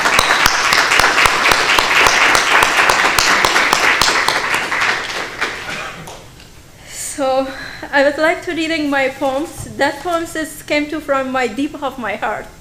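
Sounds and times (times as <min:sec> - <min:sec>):
audience applause: 0:00.0 - 0:06.2
speech: 0:08.0 - 0:12.5.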